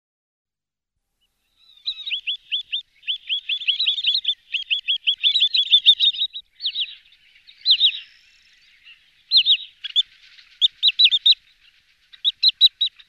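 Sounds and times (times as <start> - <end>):
wood sandpiper whistled calls: 1.6 - 13.0.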